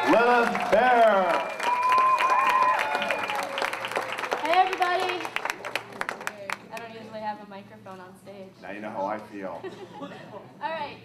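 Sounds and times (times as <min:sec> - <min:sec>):
audience applause: 0:00.0 - 0:06.8
speech: 0:00.1 - 0:01.0.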